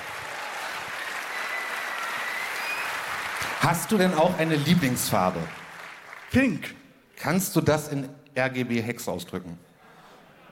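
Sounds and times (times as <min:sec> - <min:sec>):
audience clapping: 0:00.0 - 0:06.7
speech: 0:03.6 - 0:05.6, 0:06.3 - 0:09.7.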